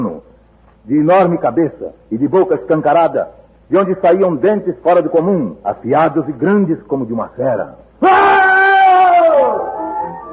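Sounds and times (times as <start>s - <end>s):
speech: 0.9s - 8.4s
person screaming in a 1947 radio horror drama: 8.0s - 10.3s.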